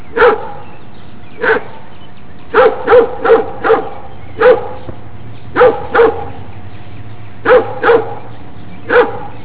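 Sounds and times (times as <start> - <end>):
animal barking: 0.1 - 0.7, 1.4 - 1.8, 2.5 - 4.9, 5.5 - 6.4, 7.4 - 9.4.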